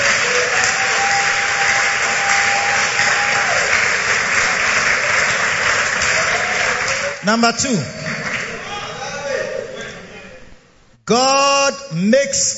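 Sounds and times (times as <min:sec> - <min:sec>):
audience clapping: 0:00.0 - 0:09.4
speech: 0:07.2 - 0:08.0, 0:11.1 - 0:12.5.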